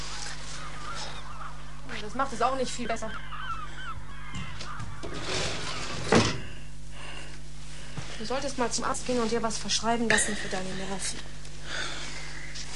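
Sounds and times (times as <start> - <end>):
seagulls screeching at night through an open window: 0.2 - 6.1
speech: 2.0 - 3.4, 8.2 - 11.9.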